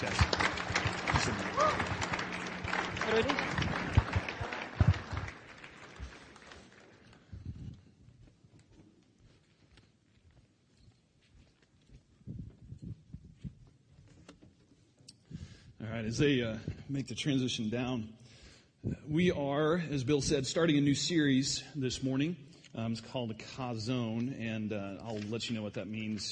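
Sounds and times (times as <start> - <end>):
speech: 0.0 - 0.3, 3.1 - 3.5, 16.2 - 26.2
audience applauding: 0.0 - 7.3.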